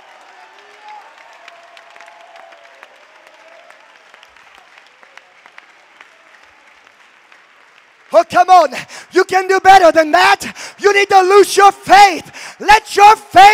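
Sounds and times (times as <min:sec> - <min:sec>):
audience clapping hands: 0:00.0 - 0:09.5
speech: 0:08.1 - 0:13.5.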